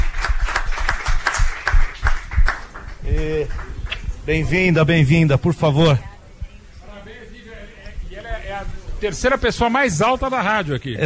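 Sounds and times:
small group clapping: 0:00.0 - 0:04.1
speech: 0:03.2 - 0:06.1, 0:08.6 - 0:11.0.

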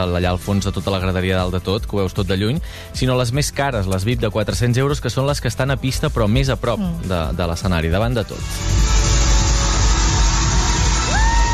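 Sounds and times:
speech: 0:00.0 - 0:08.9
stadium concert crowd screaming as a singer runs across the stadium: 0:08.8 - 0:11.5.

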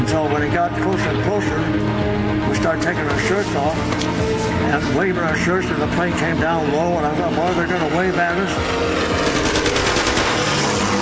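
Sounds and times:
speech: 0:00.1 - 0:09.4
machine gun firing: 0:09.1 - 0:10.9.

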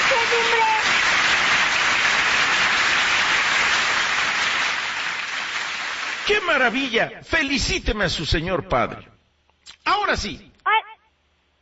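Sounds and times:
audience applause: 0:00.0 - 0:06.8
speech: 0:06.3 - 0:09.1, 0:09.8 - 0:10.5.

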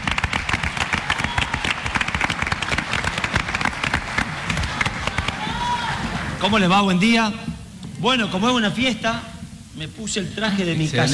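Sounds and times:
audience applause: 0:00.0 - 0:06.5
speech: 0:06.4 - 0:11.1.

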